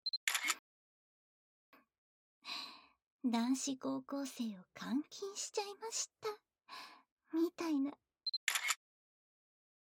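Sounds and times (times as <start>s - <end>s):
camera beep: 0.1s - 0.6s, 8.3s - 8.8s
camera shutter snapping: 0.2s - 0.6s, 8.4s - 8.8s
speech: 3.2s - 8.0s.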